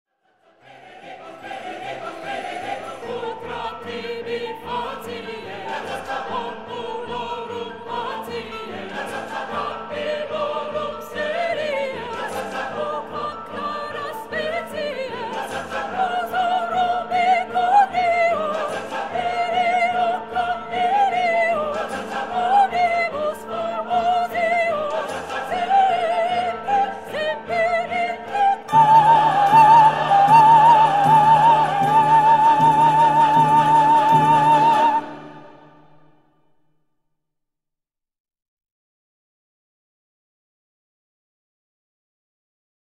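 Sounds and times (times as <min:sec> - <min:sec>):
choir singing, second soprano: 0:00.2 - 0:36.2.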